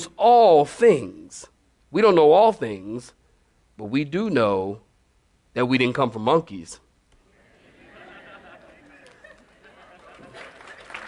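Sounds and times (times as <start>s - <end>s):
speech: 0.1s - 3.2s, 3.8s - 4.8s, 5.6s - 6.8s
laughter: 7.3s - 11.0s
crowd clapping: 8.6s - 11.0s.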